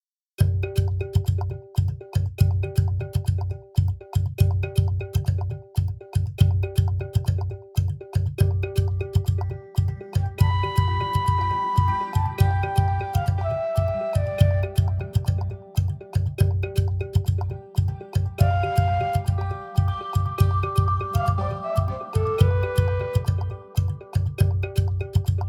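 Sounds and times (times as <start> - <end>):
afrobeat kalimba: 0.4 - 25.4.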